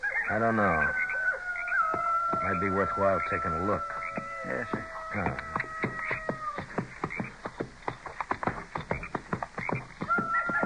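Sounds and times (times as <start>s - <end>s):
coyotes howling: 0.0s - 7.4s, 9.7s - 10.6s
coyotes yipping: 0.0s - 10.6s
speech: 0.3s - 1.0s, 2.3s - 5.6s.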